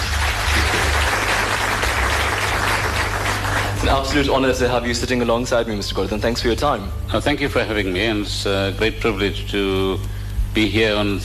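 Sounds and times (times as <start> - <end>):
audience applause: 0.0 - 4.5
speech: 3.9 - 11.2.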